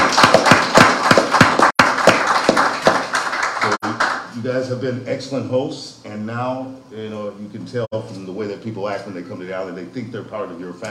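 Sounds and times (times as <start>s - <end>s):
crowd applauding: 0.0s - 4.3s
speech: 4.5s - 10.8s.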